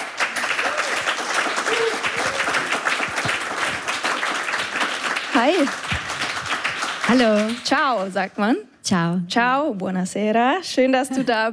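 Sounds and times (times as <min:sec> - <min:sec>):
audience applause: 0:00.0 - 0:08.1
speech: 0:05.4 - 0:05.9, 0:07.1 - 0:11.5.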